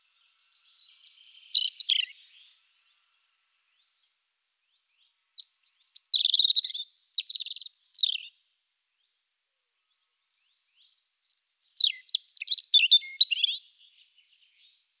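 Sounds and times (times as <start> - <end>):
European robin singing: 0.0 - 2.6, 4.9 - 8.3, 10.7 - 14.7.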